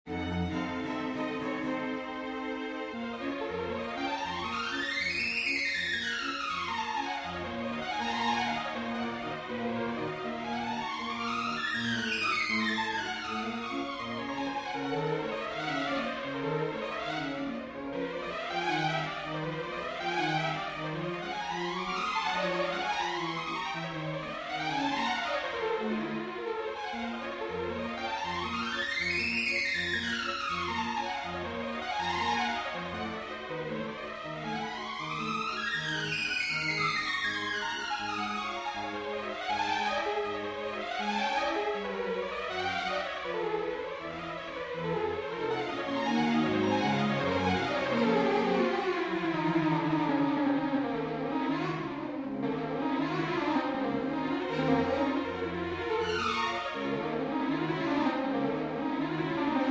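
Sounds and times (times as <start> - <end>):
string quartet playing a prelude: 0.1 - 59.6.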